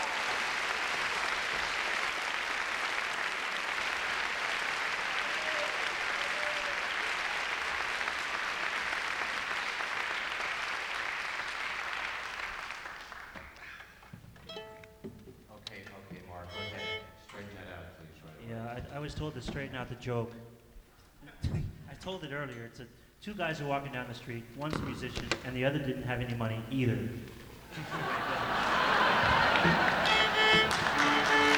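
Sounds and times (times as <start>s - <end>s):
audience round of applause: 0.0s - 14.2s, 27.3s - 31.5s
speech: 19.0s - 20.5s, 22.0s - 31.5s
laughter: 23.6s - 31.5s.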